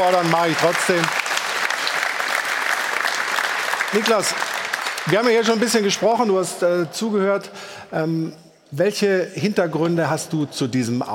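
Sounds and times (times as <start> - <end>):
speech: 0.0 - 1.2, 3.9 - 11.1
studio audience applause: 0.0 - 6.0.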